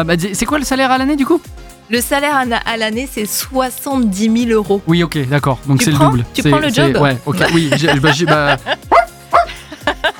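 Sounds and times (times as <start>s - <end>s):
speech: 0.0s - 9.2s
laughter: 5.8s - 10.1s
small dog barking: 8.9s - 9.5s.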